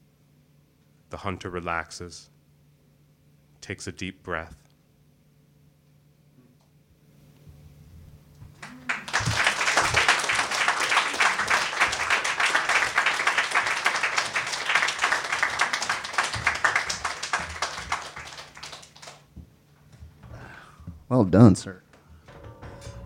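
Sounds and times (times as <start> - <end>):
speech: 1.1 - 2.4, 3.7 - 4.6, 21.2 - 21.8
audience applause: 8.6 - 19.3.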